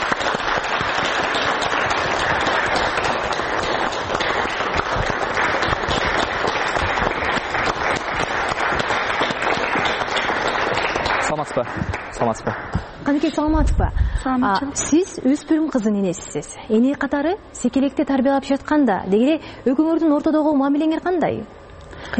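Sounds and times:
audience at a school talk applauding to welcome a parent: 0.0 - 13.0
speech: 11.6 - 22.1.

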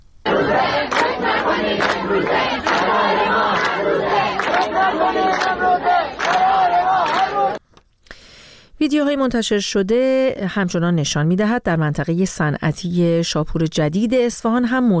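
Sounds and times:
students chanting a protest slogan at Razi University in Kermanshah: 0.3 - 7.6
speech: 8.8 - 14.9.

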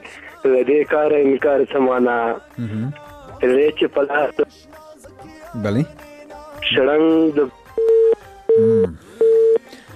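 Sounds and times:
speech: 0.4 - 4.6, 5.5 - 6.0, 6.7 - 7.6, 8.6 - 9.0
telephone busy tone after a call is cut off: 7.8 - 9.6.

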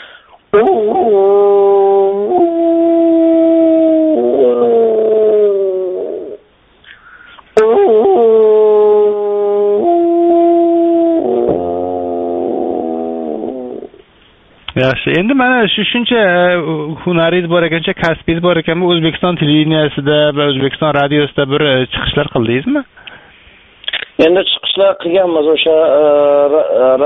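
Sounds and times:
speech: 0.5 - 1.6, 15.0 - 23.0, 24.2 - 27.0
human voice imitating a wolf howling: 0.5 - 6.4, 7.6 - 14.0, 25.8 - 27.0.

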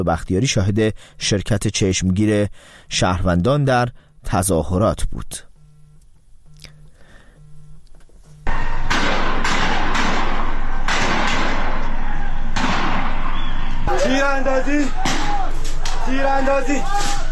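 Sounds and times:
speech: 0.0 - 5.5, 14.0 - 15.0, 16.0 - 17.2
gunshots fired at a street protest: 8.5 - 16.2.

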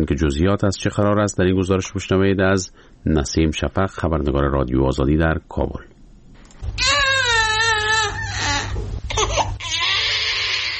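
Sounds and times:
speech: 0.0 - 5.9
newborn baby crying: 6.7 - 10.7.

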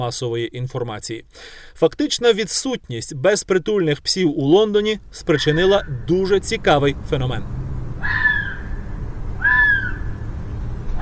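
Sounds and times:
speech: 0.0 - 7.6
urban foxes calling at night in London: 5.3 - 6.0, 8.0 - 10.2.

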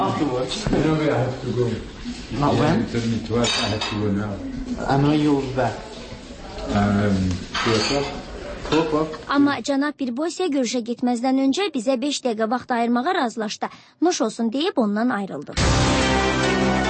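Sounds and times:
speech: 0.1 - 6.0, 6.7 - 16.8
cutlery and dishes clinking in a kitchen as people eat lunch: 3.3 - 4.2, 7.4 - 9.0.

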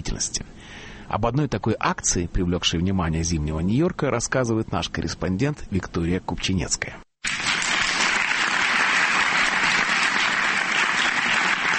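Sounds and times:
speech: 0.1 - 7.0
long audience applause: 7.2 - 11.7.

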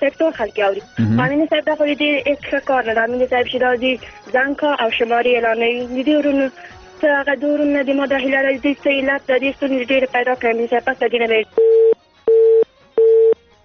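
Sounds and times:
speech: 0.0 - 12.0
phone line busy tone beeps after a dropped call: 11.6 - 13.4.

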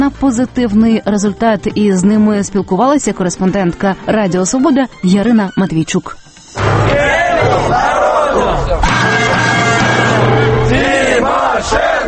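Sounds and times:
speech: 0.0 - 9.5
large crowd of protesters chanting a slogan outdoors: 6.6 - 12.0.

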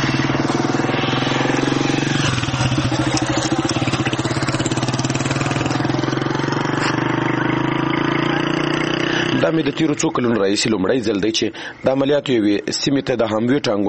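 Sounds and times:
ordinary light cars driving along a newly opened road between Chanjir and Babaji: 0.0 - 10.4
speech: 9.5 - 13.8.

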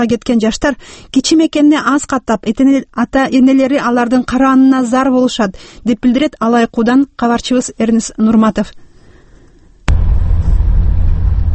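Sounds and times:
speech: 0.0 - 8.8
UAZ vehicle engine rumble on a rough rural road: 9.9 - 11.5.

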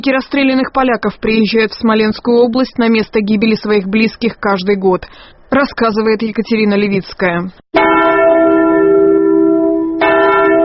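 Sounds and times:
speech: 0.0 - 7.9
mourning bell tolling in Katyn: 7.8 - 10.6.

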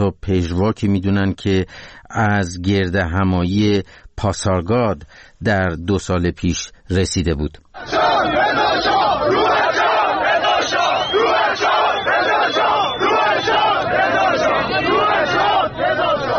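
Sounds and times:
speech: 0.0 - 9.6
protest crowd chanting slogans: 7.8 - 16.3.

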